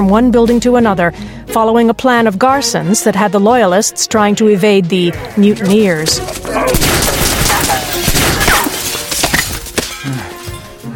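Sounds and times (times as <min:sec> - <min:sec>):
speech: 0:00.0 - 0:06.8
gunfire shots: 0:06.6 - 0:09.5.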